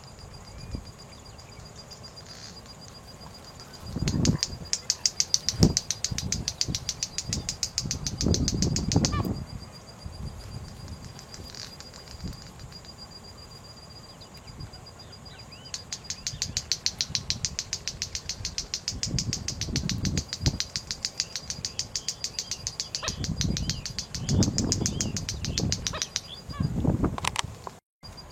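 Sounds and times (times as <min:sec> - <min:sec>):
white-bellied seedeater song: 0:02.3 - 0:09.4, 0:10.5 - 0:13.0, 0:15.4 - 0:27.5.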